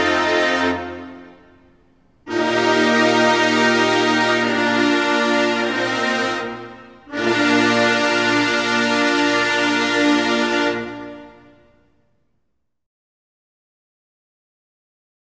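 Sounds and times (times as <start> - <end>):
band playing: 0.0 - 11.7.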